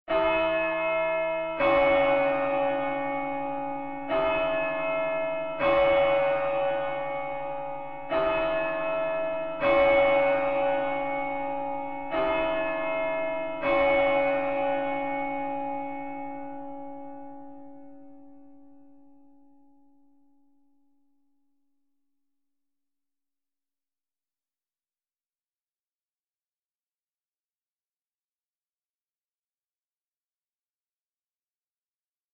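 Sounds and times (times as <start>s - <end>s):
bells ringing: 0.1s - 18.0s.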